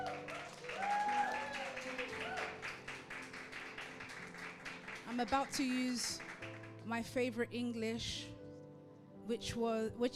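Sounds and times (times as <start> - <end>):
cheering voices and whoops: 0.0 - 2.6
studio audience round of applause: 0.0 - 6.7
speech: 5.2 - 8.3, 9.3 - 10.1.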